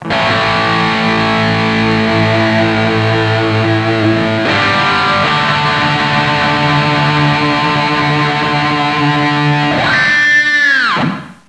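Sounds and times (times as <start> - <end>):
rock music ringtone: 0.0 - 11.1.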